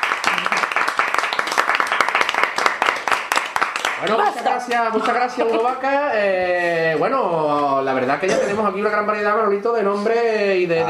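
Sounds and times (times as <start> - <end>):
audience applause: 0.0 - 5.2
speech: 4.0 - 10.8.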